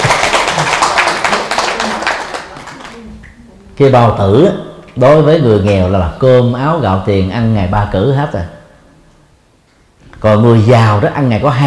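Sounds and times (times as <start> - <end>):
audience applause: 0.0 - 3.0
speech: 3.8 - 8.6, 10.2 - 11.6.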